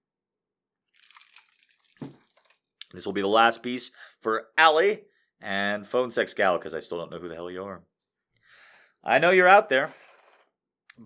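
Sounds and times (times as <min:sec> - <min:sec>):
person sipping a drink: 0:01.0 - 0:03.0
speech: 0:02.9 - 0:07.9, 0:09.0 - 0:10.0.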